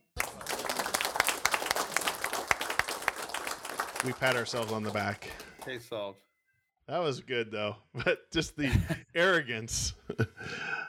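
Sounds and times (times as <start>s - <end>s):
applause: 0.0s - 5.8s
speech: 4.0s - 6.3s, 6.9s - 10.8s.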